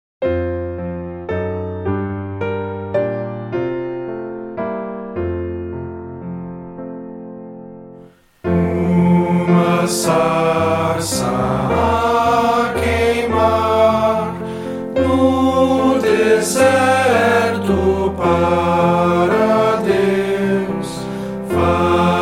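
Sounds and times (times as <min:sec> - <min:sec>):
piano: 0:00.2 - 0:22.2
person singing: 0:08.5 - 0:22.2.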